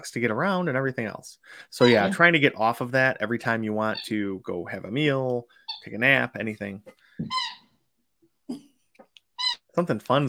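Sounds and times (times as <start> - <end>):
speech: 0.0 - 7.6, 9.8 - 10.2
dog's squeaky toy squeaking: 1.8 - 2.3, 3.8 - 4.2, 5.6 - 6.2, 7.2 - 7.8, 9.4 - 9.7.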